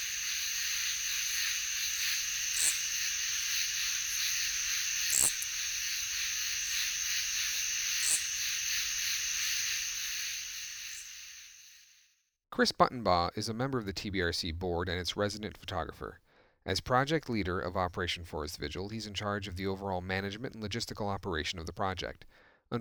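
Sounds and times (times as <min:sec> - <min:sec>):
insects chirping at night: 0:00.0 - 0:12.1
speech: 0:12.6 - 0:22.8.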